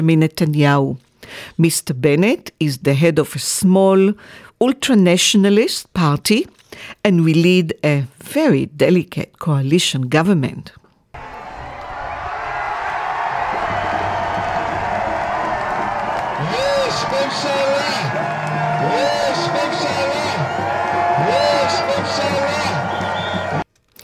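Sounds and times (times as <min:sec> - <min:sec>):
speech: 0:00.0 - 0:10.8
street crowd cheering and chanting on the streets of Israel: 0:11.2 - 0:23.6.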